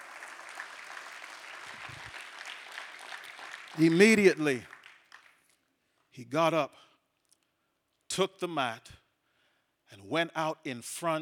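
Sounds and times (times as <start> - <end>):
audience hand clapping in church: 0.0 - 5.6
speech: 3.8 - 4.7, 6.2 - 6.9, 8.2 - 9.0, 9.9 - 11.2.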